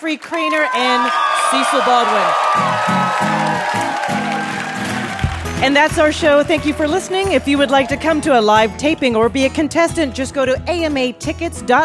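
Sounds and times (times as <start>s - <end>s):
speech: 0.0s - 3.9s, 5.6s - 11.8s
audience applause: 0.2s - 8.4s.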